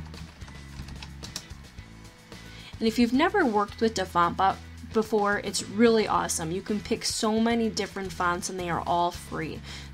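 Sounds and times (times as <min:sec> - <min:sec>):
typing on a computer keyboard: 0:00.0 - 0:01.6
speech: 0:02.8 - 0:09.9.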